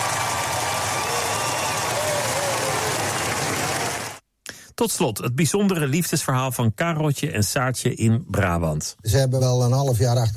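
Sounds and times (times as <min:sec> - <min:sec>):
faint cheering voices: 0:00.0 - 0:04.2
large crowd applause for royal family: 0:00.0 - 0:04.2
speech: 0:04.8 - 0:10.3.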